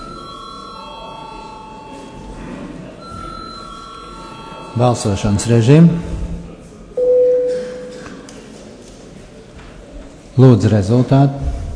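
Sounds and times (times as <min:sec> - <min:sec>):
parliament voting bell ringing: 0:00.0 - 0:02.4, 0:03.0 - 0:05.7, 0:07.0 - 0:08.0
speech: 0:04.8 - 0:06.2, 0:10.4 - 0:11.6.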